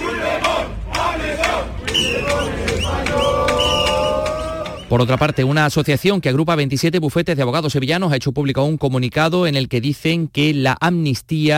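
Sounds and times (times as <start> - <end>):
protest crowd chanting political slogans: 0.0 - 4.9
speech: 4.9 - 11.5.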